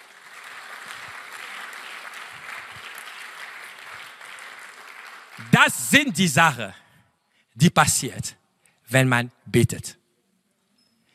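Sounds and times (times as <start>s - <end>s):
audience applause: 0.0s - 6.2s
speech: 5.4s - 6.8s, 7.6s - 10.0s.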